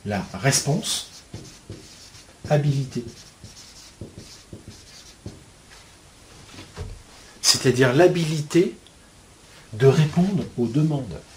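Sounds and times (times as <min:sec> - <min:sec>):
speech: 0:00.0 - 0:01.5, 0:02.5 - 0:03.3, 0:07.6 - 0:08.8, 0:09.7 - 0:11.3
low steady hiss: 0:00.0 - 0:11.3
scratching strokes of writing a word by hand: 0:00.5 - 0:05.4.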